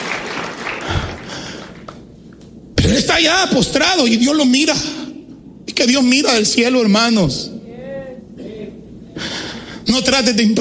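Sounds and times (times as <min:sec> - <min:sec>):
congregation applauding during a church service: 0:00.0 - 0:02.0
speech: 0:02.9 - 0:05.0, 0:05.8 - 0:07.5, 0:09.9 - 0:10.5.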